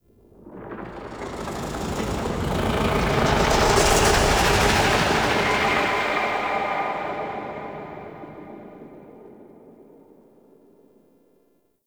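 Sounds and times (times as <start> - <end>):
pulsating whoosh: 0.5 - 9.1.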